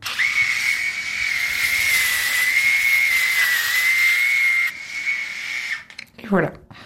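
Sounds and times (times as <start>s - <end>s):
electric hair clippers buzzing: 0.0s - 6.0s
speech: 6.3s - 6.6s.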